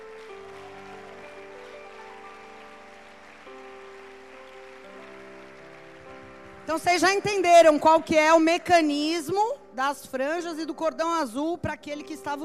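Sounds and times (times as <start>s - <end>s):
crowd applauding: 0.0s - 8.1s
speech: 6.7s - 12.4s.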